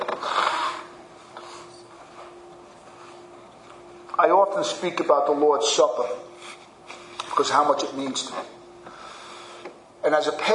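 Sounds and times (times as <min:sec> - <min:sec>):
nose blowing: 0:00.2 - 0:01.0
speech: 0:04.2 - 0:06.4, 0:07.4 - 0:08.6, 0:10.1 - 0:10.5.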